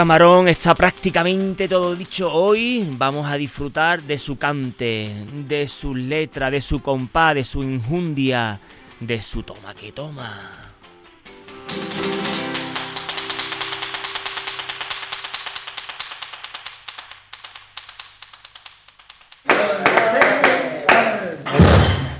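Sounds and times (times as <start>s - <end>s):
flamenco hand clapping palmas: 0.0s - 3.2s, 11.7s - 21.3s
speech: 0.0s - 10.7s.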